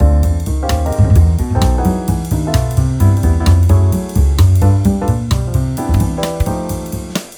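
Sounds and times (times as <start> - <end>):
bass: 0.0 - 7.3.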